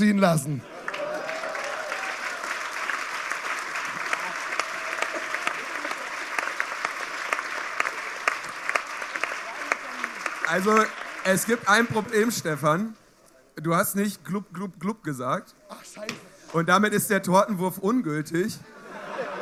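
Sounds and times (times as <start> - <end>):
speech: 0.0 - 0.7, 10.5 - 13.0, 13.6 - 18.8
audience applause: 0.6 - 12.6
laughter: 18.6 - 19.4.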